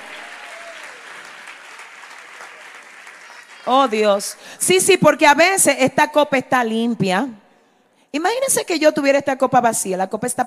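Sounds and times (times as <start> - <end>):
audience applause: 0.0 - 4.6
speech: 3.6 - 7.4, 8.1 - 10.4.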